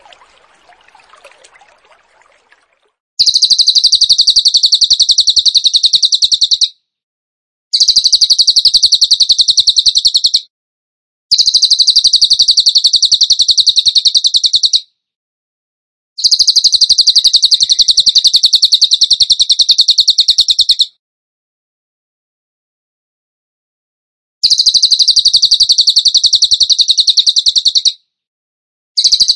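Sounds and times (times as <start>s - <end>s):
bird chirping song: 0.0s - 6.8s, 7.8s - 10.5s, 11.4s - 14.8s, 16.2s - 20.9s, 24.4s - 28.0s.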